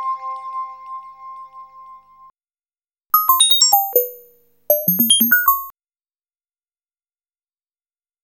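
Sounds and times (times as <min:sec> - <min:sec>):
ambient music: 0:03.2 - 0:05.7.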